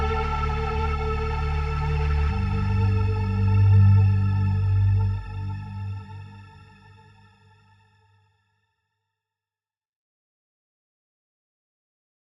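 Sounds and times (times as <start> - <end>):
ambient music: 0.0 - 8.1.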